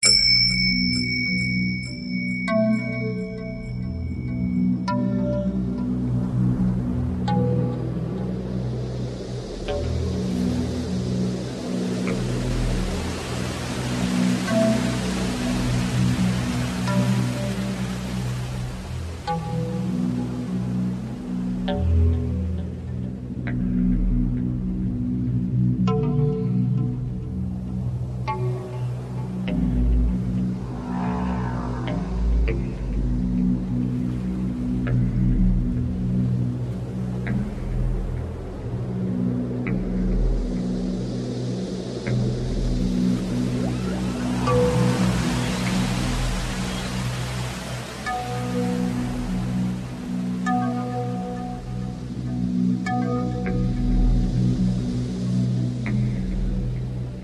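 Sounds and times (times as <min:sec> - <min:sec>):
calm ocean: 0:00.0 - 0:57.2.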